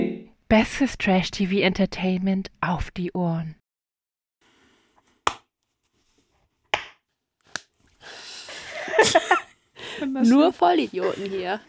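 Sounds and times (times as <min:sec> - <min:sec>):
speech: 0:00.5 - 0:03.6, 0:09.0 - 0:09.4, 0:10.0 - 0:11.6
hands clapping: 0:06.8 - 0:07.7
laughter: 0:08.5 - 0:11.6.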